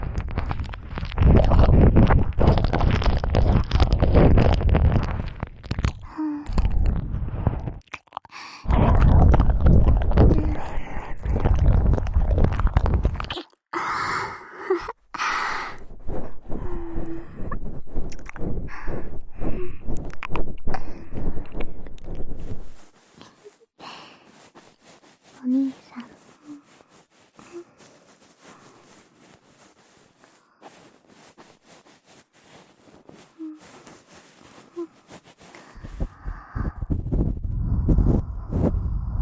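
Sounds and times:
soft rustling: 0.0s - 7.8s, 8.7s - 13.4s, 15.4s - 39.1s
small clicks and pops: 0.0s - 13.6s
wet crackly mouth noises pressed against the ear: 0.0s - 13.8s, 14.6s - 39.1s.

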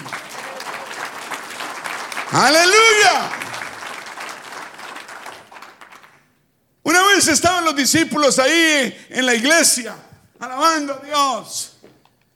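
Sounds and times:
audience applauding: 0.0s - 6.4s
speech: 2.3s - 3.4s, 7.2s - 11.7s.

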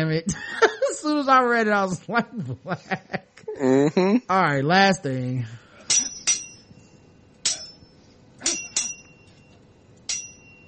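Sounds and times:
speech: 0.0s - 5.6s
metallic sword clangs from a game sound effect: 5.9s - 6.8s, 7.4s - 10.6s.

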